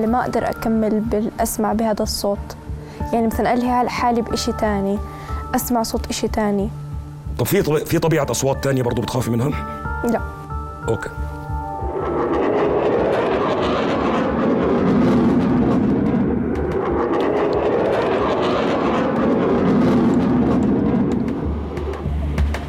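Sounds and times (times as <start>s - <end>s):
speech: 0.0s - 6.8s, 7.4s - 11.2s
military aircraft flying overhead: 11.4s - 22.6s.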